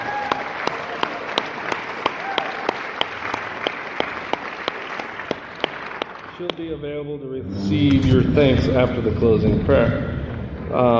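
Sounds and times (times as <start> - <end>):
audience applause: 0.0 - 6.7
regular sharp clap: 0.2 - 6.7
speech: 6.4 - 10.1, 10.7 - 10.9.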